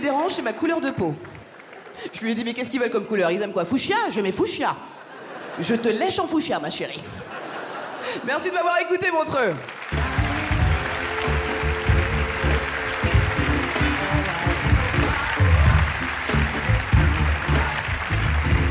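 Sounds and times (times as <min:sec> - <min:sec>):
crowd applauding: 0:00.0 - 0:02.5, 0:09.5 - 0:18.6
speech: 0:00.0 - 0:05.0, 0:05.6 - 0:07.4, 0:08.1 - 0:09.8
laughter: 0:05.0 - 0:06.3, 0:07.0 - 0:08.6
crowd cheering and whooping voices: 0:09.9 - 0:18.6.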